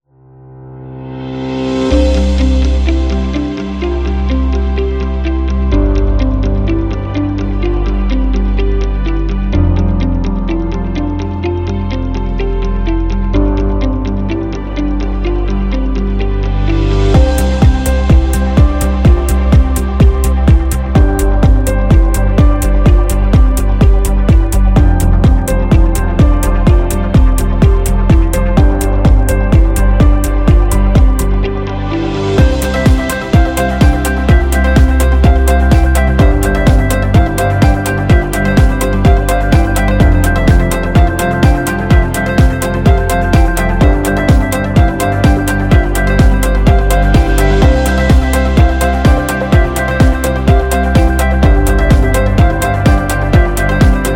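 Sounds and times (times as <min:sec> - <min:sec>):
corporate music: 0:00.3 - 0:54.1.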